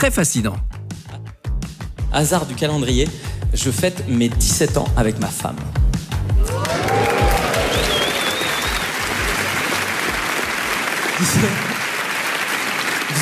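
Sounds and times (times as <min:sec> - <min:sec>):
speech: 0:00.0 - 0:00.8, 0:02.1 - 0:05.9, 0:11.2 - 0:11.7
whoops: 0:06.4 - 0:09.1
live audience applause: 0:06.4 - 0:13.2.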